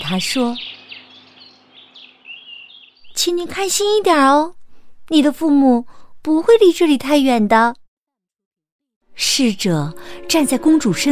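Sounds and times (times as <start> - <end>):
small bird chirping: 0.0 - 3.3
speech: 0.1 - 0.7, 3.2 - 7.8, 9.2 - 11.0.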